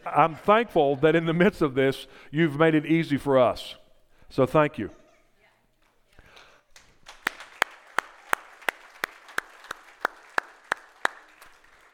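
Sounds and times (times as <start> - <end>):
speech: 0.1 - 5.0
audience applause: 6.8 - 11.9.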